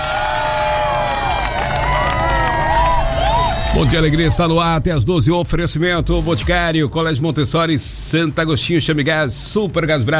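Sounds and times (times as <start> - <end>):
applause: 0.0 - 4.2
speech: 3.8 - 10.1.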